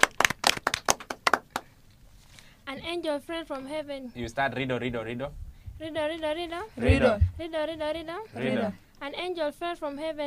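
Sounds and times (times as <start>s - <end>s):
a few people clapping for a child during a riddle game: 0.0s - 1.8s
speech: 2.8s - 10.2s.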